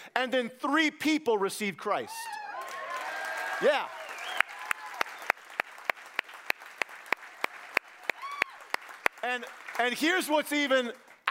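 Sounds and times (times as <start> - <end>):
speech: 0.2 - 2.4, 3.6 - 4.0, 9.3 - 11.0
audience applause: 2.5 - 11.2.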